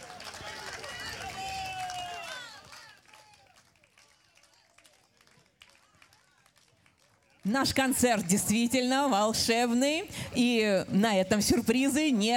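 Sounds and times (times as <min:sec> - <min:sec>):
audience applause for departing orchestra: 0:00.0 - 0:09.0
speech: 0:07.5 - 0:12.3.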